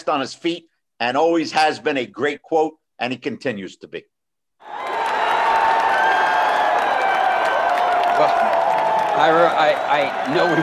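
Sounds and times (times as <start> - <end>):
speech: 0.0 - 4.8, 9.2 - 10.6
crowd of fans cheering: 4.6 - 10.6.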